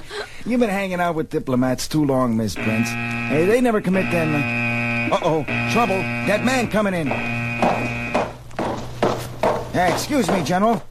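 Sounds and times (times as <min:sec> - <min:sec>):
speech: 0:00.5 - 0:08.0, 0:09.8 - 0:10.8
metal detector buzzer in a doorway: 0:02.6 - 0:08.4
sharp footstep-like knocks: 0:05.8 - 0:10.8.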